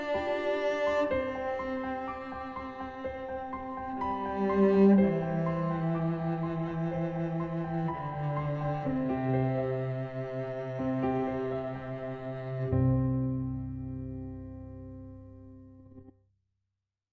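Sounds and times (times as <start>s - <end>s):
lullaby played on piano: 0.0s - 16.2s.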